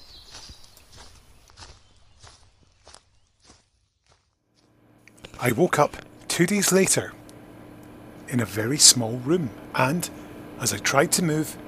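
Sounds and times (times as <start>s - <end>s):
footsteps of someone walking in loose-fitting boots: 0.0s - 6.3s
speech: 5.4s - 7.2s, 8.3s - 11.6s.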